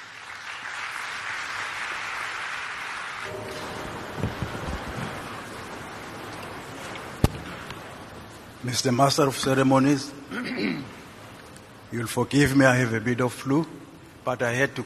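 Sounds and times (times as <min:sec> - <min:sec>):
audience clapping hands: 0:00.0 - 0:05.4
speech: 0:08.6 - 0:10.9, 0:11.9 - 0:14.8.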